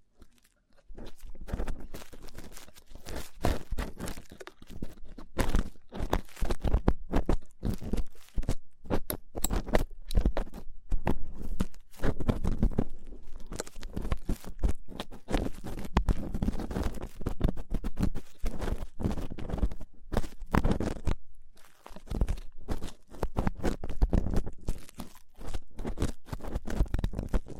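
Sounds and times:
rough ear cleaning crackling and rubbing scratches: 0.0 - 27.5.

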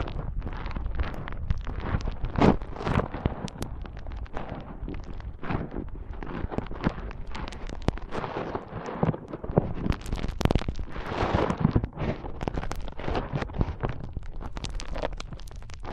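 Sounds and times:
deep rumbling bumps: 0.0 - 15.9
foam squeezed and rubbed hard: 0.0 - 15.9.

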